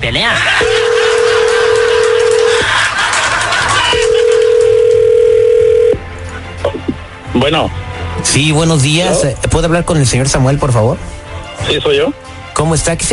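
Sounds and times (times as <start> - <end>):
speech: 0.0 - 0.7, 7.4 - 13.1
laughter: 0.2 - 4.8
telephone line tone with long electronic beeps: 0.6 - 2.7, 3.9 - 6.0.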